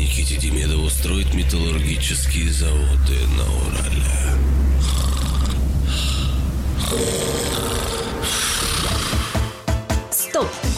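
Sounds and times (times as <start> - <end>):
speech: 0.2 - 5.0, 6.9 - 7.7
snoring: 4.2 - 9.6.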